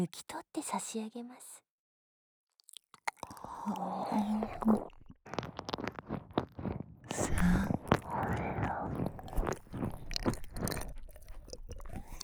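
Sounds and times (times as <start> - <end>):
speech: 0.0 - 1.6, 3.6 - 5.6
wet saliva and tongue licking mouth sounds: 2.6 - 12.2.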